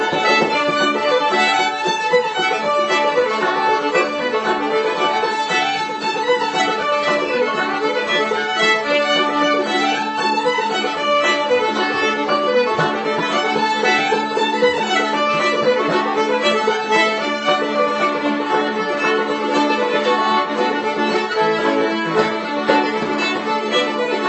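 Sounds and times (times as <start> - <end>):
banjo playing a hornpipe: 0.0 - 24.2
fiddle playing a hornpipe: 0.0 - 24.2
ukulele playing a hornpipe: 0.0 - 24.2.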